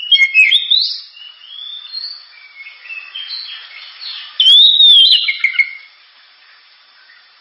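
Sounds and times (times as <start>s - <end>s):
Oriental magpie-robin singing whistled slurs and twitters: 0.0s - 5.9s.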